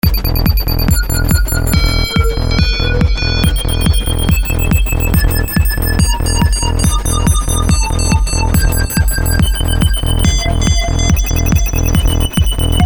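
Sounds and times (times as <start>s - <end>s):
techno music: 0.0s - 12.8s.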